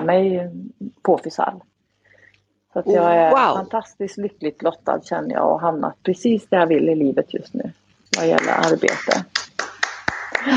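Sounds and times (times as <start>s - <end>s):
speech: 0.0s - 1.7s, 2.8s - 9.4s
hand claps echoing in room: 8.1s - 10.5s.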